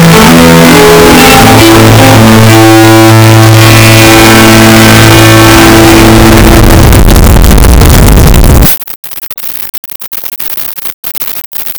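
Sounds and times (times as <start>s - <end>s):
invention: 0.0s - 8.2s.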